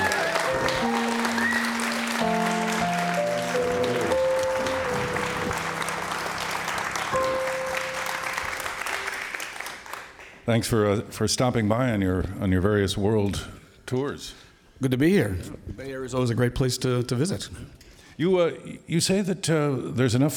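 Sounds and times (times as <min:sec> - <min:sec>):
audience applause greeting a guest at a live show: 0:00.0 - 0:10.4
speech: 0:10.5 - 0:20.3.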